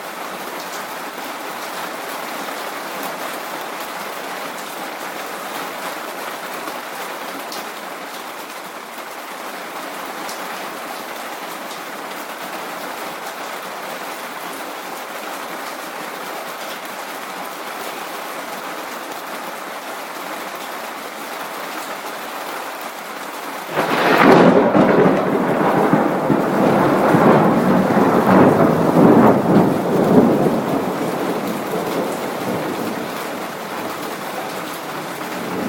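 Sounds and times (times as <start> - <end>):
rain: 0.0 - 35.6
thunder: 23.7 - 33.6, 34.8 - 35.6.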